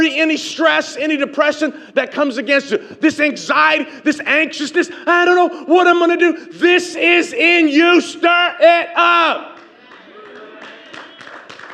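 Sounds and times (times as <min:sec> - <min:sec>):
speech: 0:00.0 - 0:09.5
golf clap: 0:09.6 - 0:11.7.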